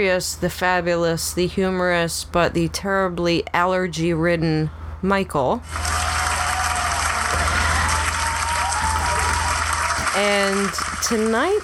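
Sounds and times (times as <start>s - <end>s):
speech: 0.0s - 6.0s, 10.2s - 11.6s
audience applause: 5.7s - 11.6s.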